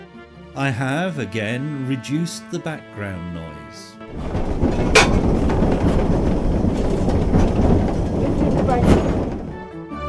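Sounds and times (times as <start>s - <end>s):
speech: 0.6s - 5.4s, 8.7s - 9.0s
locomotive working on the Watercress line on steep gradients in wet conditions: 4.1s - 9.9s.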